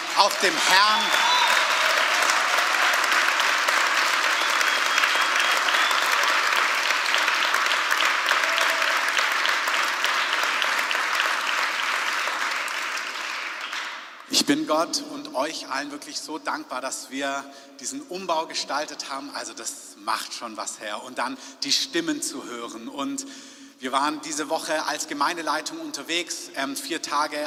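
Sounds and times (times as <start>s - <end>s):
audience applause: 0.0s - 14.2s
speech: 0.2s - 1.4s, 14.5s - 27.4s.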